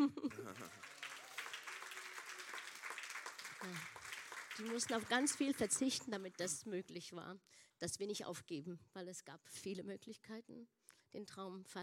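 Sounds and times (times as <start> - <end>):
audience applause: 0.3 - 6.5
speech: 3.6 - 4.0, 4.6 - 11.8.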